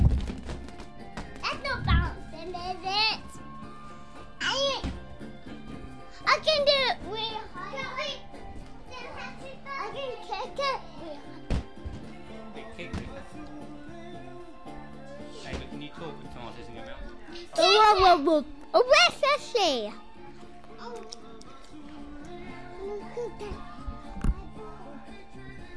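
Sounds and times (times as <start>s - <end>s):
children at a birthday: 1.2s - 12.5s, 17.1s - 25.7s.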